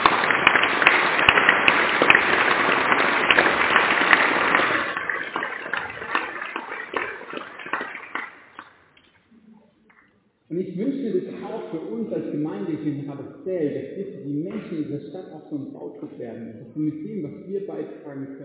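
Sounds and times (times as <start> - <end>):
audience applause: 0.0 - 8.8
speech: 12.4 - 18.4.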